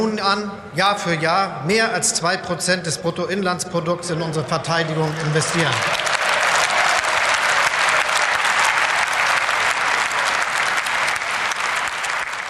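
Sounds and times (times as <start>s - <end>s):
speech: 0.0s - 6.1s
cheering: 4.7s - 12.4s.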